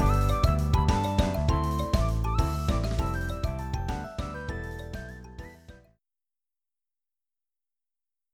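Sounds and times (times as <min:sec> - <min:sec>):
melody: 0:00.0 - 0:05.8.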